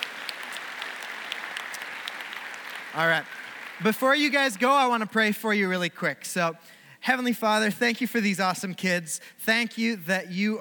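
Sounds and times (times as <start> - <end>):
audience applause: 0.0 - 4.9
speech: 2.9 - 10.5.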